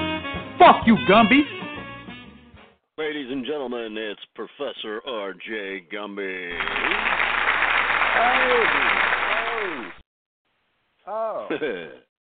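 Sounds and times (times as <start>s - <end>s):
speech: 0.6s - 1.6s, 3.0s - 7.3s, 8.2s - 10.0s, 11.1s - 12.1s
audience applause: 6.5s - 10.0s
rising and falling whoops: 8.0s - 10.0s.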